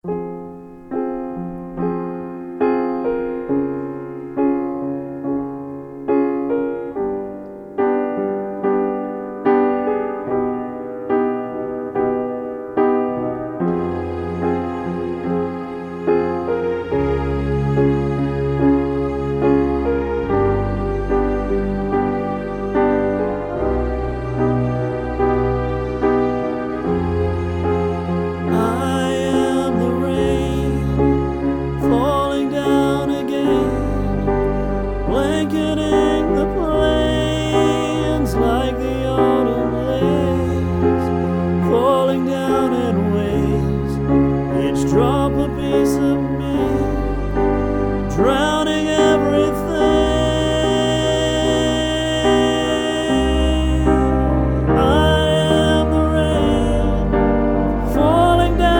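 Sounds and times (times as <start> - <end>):
acoustic music: 0.0 - 58.7.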